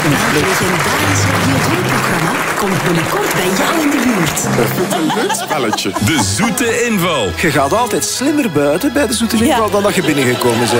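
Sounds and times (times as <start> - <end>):
applause: 0.0 - 6.0, 9.7 - 10.7
laughter: 0.0 - 10.7
speech: 0.1 - 10.7.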